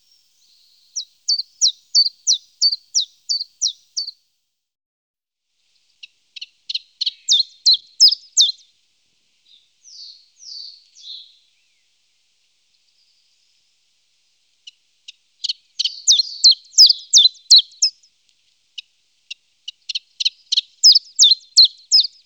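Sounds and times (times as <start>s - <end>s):
common chiffchaff Phylloscopus collybita song of high hooked notes: 0.0s - 4.1s, 6.7s - 8.6s, 9.5s - 11.9s, 15.4s - 18.0s, 19.9s - 22.2s.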